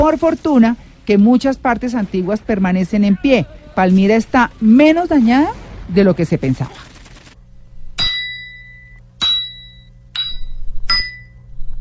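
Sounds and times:
speech: 0:00.0 - 0:06.9
hammer strike sound effect: 0:08.0 - 0:11.3.

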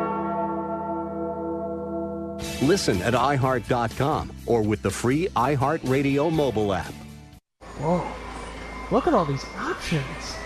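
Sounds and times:
large bell ringing: 0:00.0 - 0:02.4
speech: 0:02.6 - 0:07.0, 0:07.8 - 0:08.2, 0:08.9 - 0:10.4.

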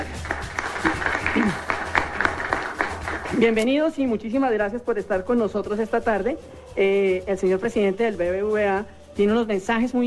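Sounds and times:
audience applause for the hosts: 0:00.0 - 0:03.5
speech: 0:01.4 - 0:01.7, 0:03.4 - 0:10.0.

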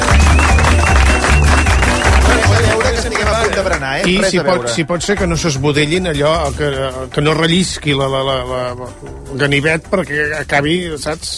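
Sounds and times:
audience applause: 0:00.0 - 0:04.6
speech: 0:03.9 - 0:11.3.

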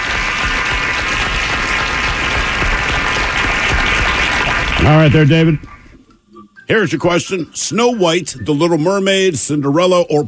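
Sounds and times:
audience applause: 0:00.0 - 0:05.9
speech: 0:04.8 - 0:05.8, 0:06.7 - 0:10.2.

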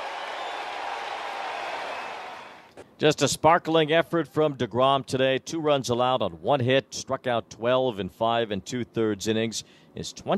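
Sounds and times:
large stadium crowd ovation with clapping and cheering: 0:00.0 - 0:02.7
speech: 0:03.0 - 0:10.3.

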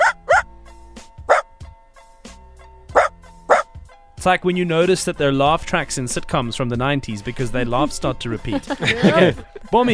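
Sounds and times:
Dachshund barking: 0:00.0 - 0:00.5, 0:01.3 - 0:01.5, 0:02.9 - 0:03.7
speech: 0:04.2 - 0:09.9
laughter: 0:08.4 - 0:09.9.

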